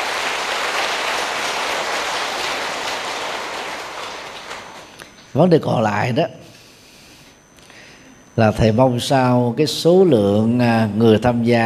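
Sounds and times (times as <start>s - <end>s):
audience applause: 0.0s - 5.0s
speech: 5.3s - 6.4s, 8.4s - 11.6s.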